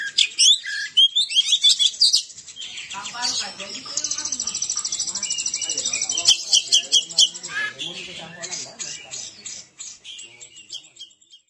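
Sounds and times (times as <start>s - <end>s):
Oriental magpie-robin whistling and chattering: 0.0s - 11.4s.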